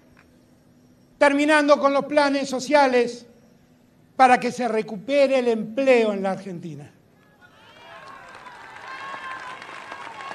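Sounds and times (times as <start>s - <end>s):
speech: 1.2s - 3.3s, 4.2s - 7.0s
audience applauding a speech: 7.7s - 10.3s.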